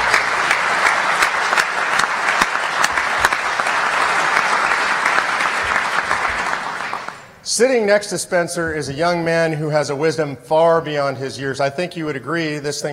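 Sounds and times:
audience applause: 0.0s - 7.3s
speech: 7.6s - 12.9s.

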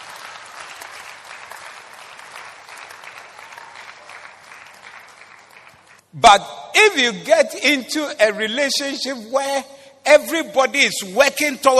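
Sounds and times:
audience clapping: 0.0s - 6.1s
speech: 6.1s - 11.7s.

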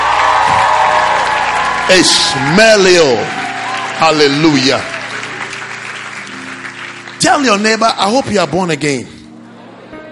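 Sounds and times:
audience cheering: 0.0s - 7.6s
audience clapping: 0.0s - 8.8s
speech: 1.9s - 3.4s, 4.0s - 4.9s, 7.2s - 9.2s.

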